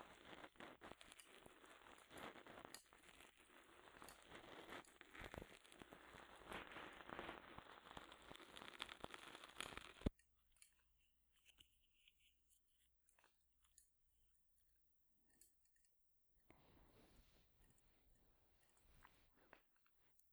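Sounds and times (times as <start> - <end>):
ear cleaning in the right ear: 0.0 - 10.1.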